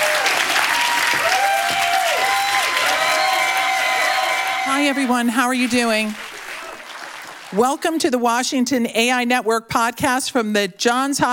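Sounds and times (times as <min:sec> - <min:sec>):
audience applause welcoming speakers onto the stage at a Johns Hopkins Bloomberg Center evening program: 0:00.0 - 0:07.8
speech: 0:04.8 - 0:06.2, 0:07.5 - 0:11.3.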